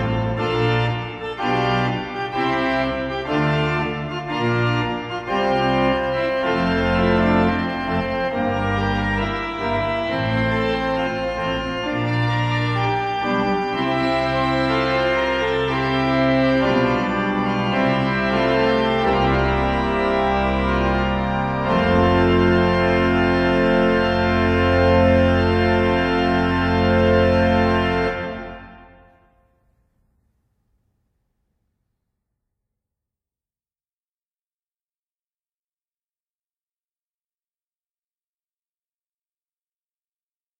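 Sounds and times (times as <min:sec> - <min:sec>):
organ postlude: 0:00.0 - 0:29.4.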